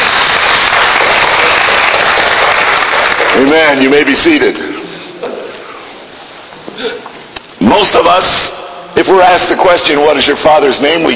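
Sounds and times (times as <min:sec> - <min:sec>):
audience clapping: 0:00.0 - 0:04.4
speech: 0:03.4 - 0:04.7, 0:07.6 - 0:11.1.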